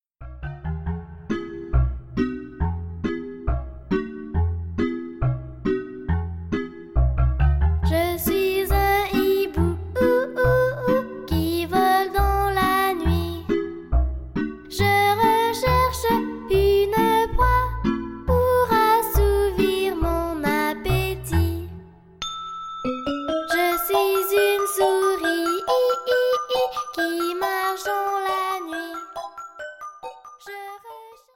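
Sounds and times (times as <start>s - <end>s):
melody: 0.2s - 30.9s.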